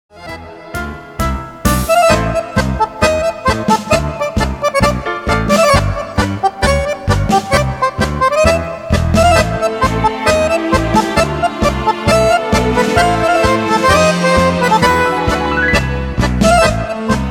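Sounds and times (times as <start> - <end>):
virtuoso accordion playing: 0.2 - 17.2.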